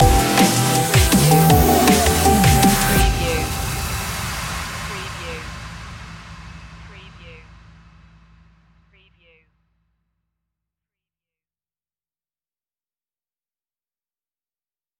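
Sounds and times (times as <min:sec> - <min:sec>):
rising musical stinger: 0:00.0 - 0:04.9.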